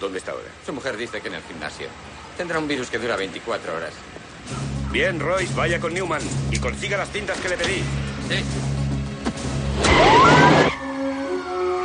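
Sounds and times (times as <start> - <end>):
speech: 0.0 - 8.7
car engine hum in a 1998 action film: 4.0 - 10.8.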